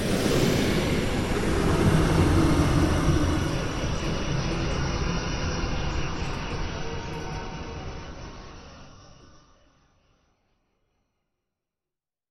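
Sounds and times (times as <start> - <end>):
dark space suction: 0.0 - 6.7.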